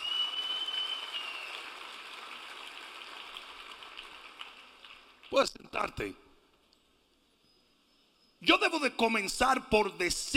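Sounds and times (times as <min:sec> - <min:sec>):
audience applause: 0:00.0 - 0:05.4
speech: 0:05.3 - 0:06.2, 0:08.4 - 0:10.3.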